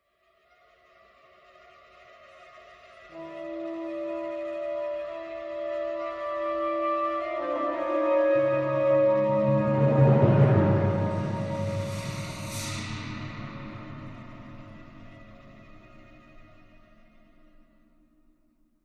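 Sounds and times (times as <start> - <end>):
ambient music: 2.9 - 17.8.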